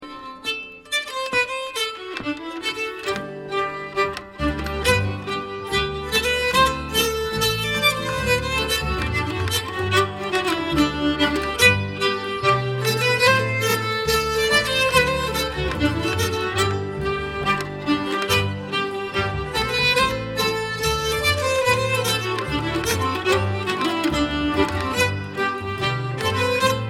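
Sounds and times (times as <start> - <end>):
folk dance tune in G: 0.0 - 26.8.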